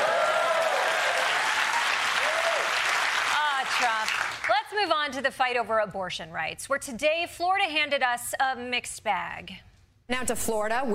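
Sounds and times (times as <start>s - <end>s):
audience applause: 0.0s - 4.5s
speech: 4.8s - 10.9s.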